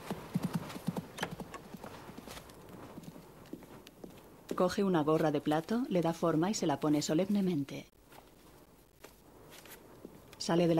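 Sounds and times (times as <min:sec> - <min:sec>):
horse hooves clip-clopping as a mounted courier rides off down a street: 0:00.0 - 0:06.2
speech: 0:04.6 - 0:08.0, 0:10.4 - 0:10.7.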